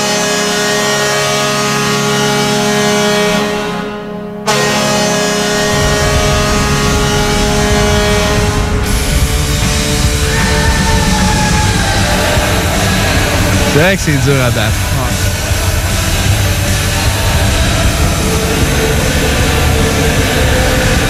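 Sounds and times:
hockey arena goal siren: 0:00.0 - 0:15.0
laughter: 0:10.3 - 0:21.0
speech: 0:13.8 - 0:14.9.

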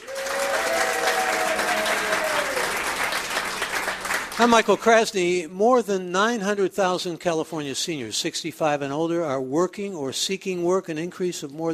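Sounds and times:
live audience applause: 0:00.0 - 0:04.8
speech: 0:04.4 - 0:11.7.

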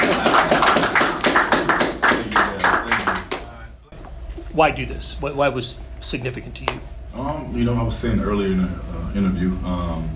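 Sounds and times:
clapping: 0:00.0 - 0:03.5
speech: 0:04.6 - 0:10.1.

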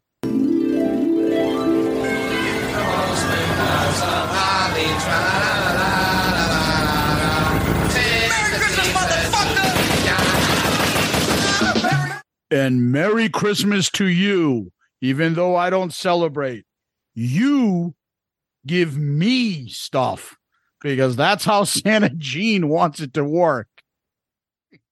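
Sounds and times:
sustained tonal sounds: 0:00.2 - 0:09.4
laughter: 0:02.4 - 0:07.9, 0:08.5 - 0:12.2
rapid gunfire from a drive-by shooting sound effect: 0:08.8 - 0:12.2
speech: 0:12.5 - 0:18.0, 0:18.6 - 0:23.7.

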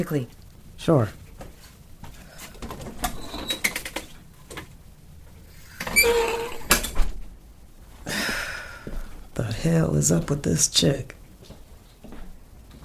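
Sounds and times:
speech: 0:00.0 - 0:01.2, 0:09.6 - 0:11.2
front door swinging open with a clunk and scraping sweep: 0:05.5 - 0:07.1.

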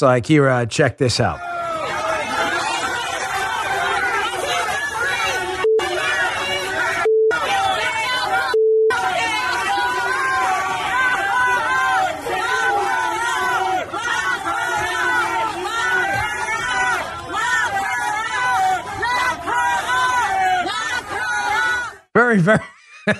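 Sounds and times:
speech: 0:00.0 - 0:01.6, 0:22.4 - 0:23.1
crowd of New Yorkers cheering to welcome Hillary Clinton outside a New York City hotel: 0:01.3 - 0:22.1.

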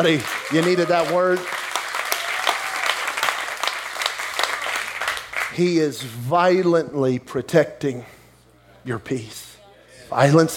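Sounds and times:
speech: 0:00.0 - 0:01.6, 0:05.6 - 0:08.2, 0:08.8 - 0:09.5, 0:10.1 - 0:10.5
audience clapping: 0:00.0 - 0:05.6.

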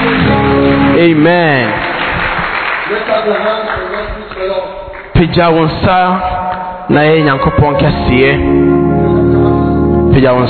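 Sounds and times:
audience clapping hands: 0:00.0 - 0:05.4
speech: 0:01.1 - 0:01.9, 0:03.0 - 0:09.2, 0:10.2 - 0:10.4.

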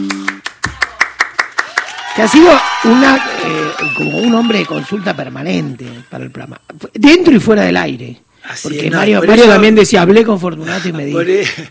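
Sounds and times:
hand claps: 0:00.0 - 0:02.2
speech: 0:02.2 - 0:11.6.

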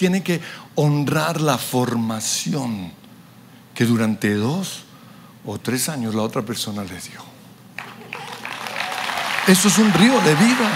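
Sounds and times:
speech: 0:00.0 - 0:03.0, 0:03.8 - 0:07.3, 0:09.5 - 0:10.7
audience applause: 0:07.8 - 0:10.7.

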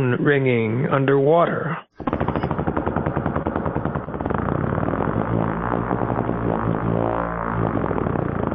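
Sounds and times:
speech: 0:00.0 - 0:02.4, 0:05.4 - 0:08.5
motorboat's propeller failing: 0:02.0 - 0:08.5.

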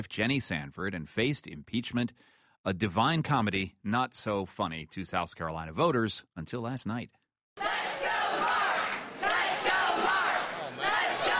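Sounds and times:
speech: 0:00.0 - 0:07.7
supporters cheering: 0:07.6 - 0:11.3.

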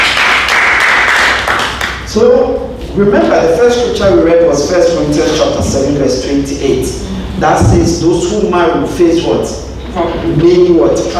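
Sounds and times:
audience clapping: 0:00.0 - 0:02.1
speech: 0:02.1 - 0:11.1.

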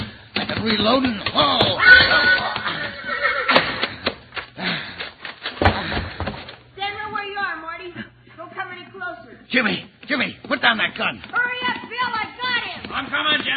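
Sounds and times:
horse galloping hoofbeats in a radio-drama western: 0:00.0 - 0:06.7, 0:10.0 - 0:13.5
speech: 0:00.5 - 0:02.2, 0:09.5 - 0:11.4, 0:13.0 - 0:13.5
horse whinnying in a radio-drama western: 0:01.4 - 0:03.9.

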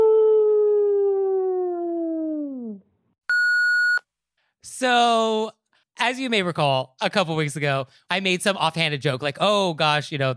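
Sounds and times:
person howling like a wolf: 0:00.0 - 0:02.8
short steady high beep: 0:03.3 - 0:04.0
speech: 0:04.8 - 0:10.3.

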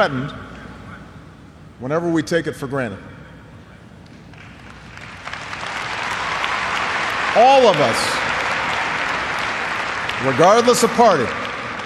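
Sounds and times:
speech: 0:00.0 - 0:00.4, 0:01.8 - 0:03.1, 0:07.4 - 0:08.2, 0:10.2 - 0:11.4
crowd of 20,000 people cheering: 0:04.4 - 0:11.8.

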